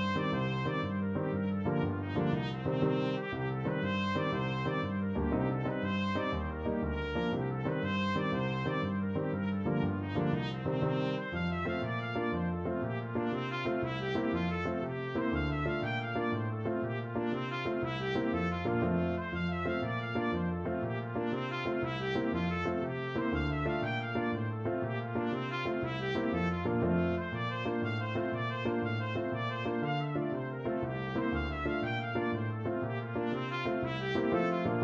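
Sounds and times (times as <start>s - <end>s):
Irish jig medley on trumpet: 0.0s - 34.8s.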